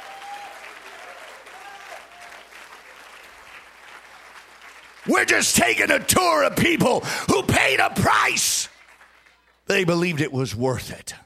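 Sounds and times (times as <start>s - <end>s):
audience clapping hands: 0.0s - 10.2s
speech: 5.0s - 8.7s, 9.7s - 11.2s.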